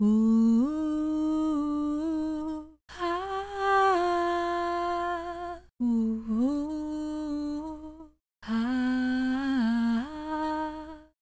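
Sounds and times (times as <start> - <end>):
woman singing: 0.0 - 11.2.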